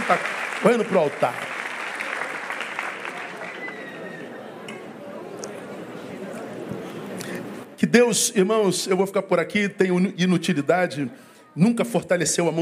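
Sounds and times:
audience applauding: 0.0 - 4.6
speech: 0.1 - 1.5, 7.9 - 12.5.

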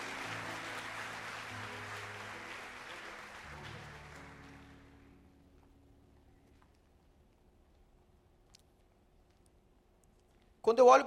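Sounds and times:
audience applauding: 0.0 - 5.3
speech: 10.7 - 11.0.

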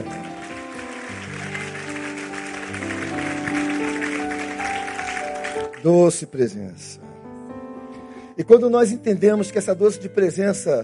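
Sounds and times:
audience applause: 0.0 - 5.9
speech: 5.8 - 7.0, 8.4 - 10.8.

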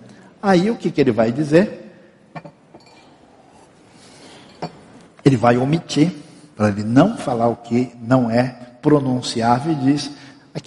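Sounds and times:
speech: 0.4 - 1.8, 5.3 - 10.6
glass clinking as someone drinks water: 2.4 - 3.3, 4.3 - 5.0.

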